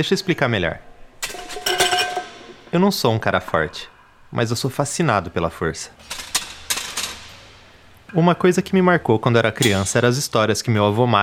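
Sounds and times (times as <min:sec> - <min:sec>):
speech: 0:00.0 - 0:00.9, 0:02.7 - 0:06.1, 0:08.1 - 0:11.2
metal weights clanking in a powerlifting class: 0:01.2 - 0:02.8.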